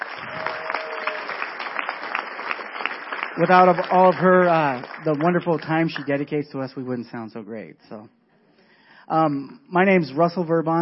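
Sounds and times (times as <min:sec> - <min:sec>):
audience applause: 0:00.0 - 0:06.0
speech: 0:03.4 - 0:08.2, 0:09.1 - 0:10.7.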